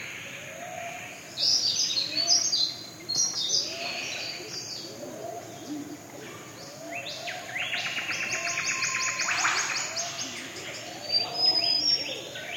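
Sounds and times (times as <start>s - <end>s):
walking in a rainforest: 0.0s - 12.5s.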